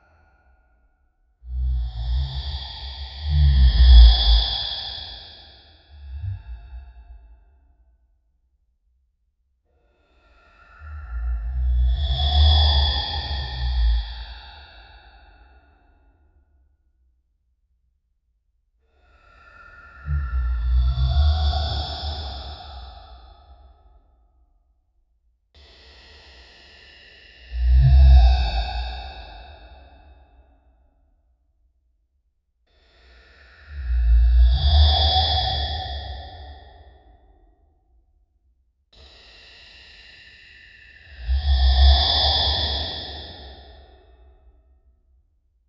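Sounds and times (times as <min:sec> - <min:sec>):
snoring in a cave: 0:01.5 - 0:07.3, 0:10.0 - 0:15.8, 0:19.0 - 0:23.7, 0:25.8 - 0:30.3, 0:32.8 - 0:37.5, 0:39.0 - 0:44.4.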